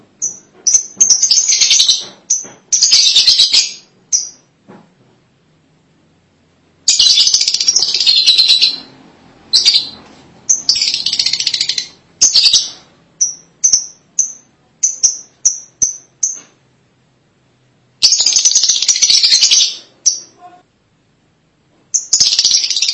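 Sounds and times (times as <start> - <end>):
lovebird chatter: 0.2 - 4.5, 6.9 - 8.9, 9.5 - 16.5, 18.0 - 20.6, 21.9 - 22.9.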